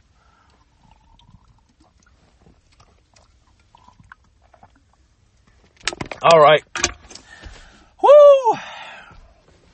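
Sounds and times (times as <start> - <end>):
person drinking a cold drink: 0.3 - 4.8
speech: 6.2 - 6.8.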